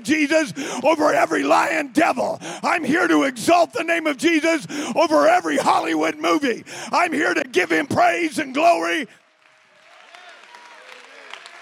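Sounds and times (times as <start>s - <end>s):
speech: 0.0s - 9.2s
audience clapping hands: 8.4s - 11.6s.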